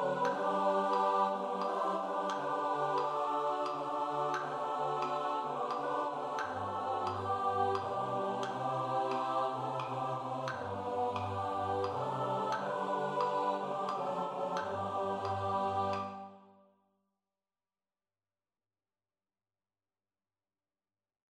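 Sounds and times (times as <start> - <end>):
SATB choir study: 0.0 - 16.6.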